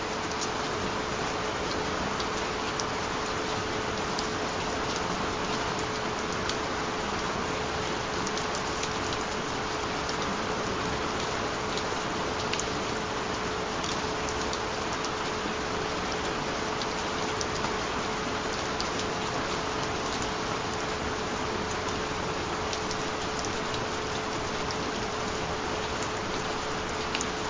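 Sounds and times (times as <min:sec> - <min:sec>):
relaxing rain: 0:00.0 - 0:27.4.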